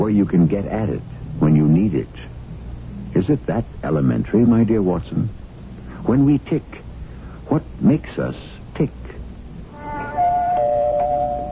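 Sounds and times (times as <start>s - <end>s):
speech: 0.1s - 2.4s, 3.2s - 5.4s, 6.0s - 6.8s, 7.5s - 9.0s
doorbell ringing: 9.8s - 11.4s.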